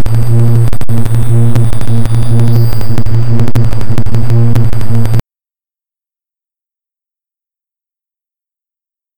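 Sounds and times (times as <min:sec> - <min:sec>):
heavy noise: 0:00.0 - 0:05.2.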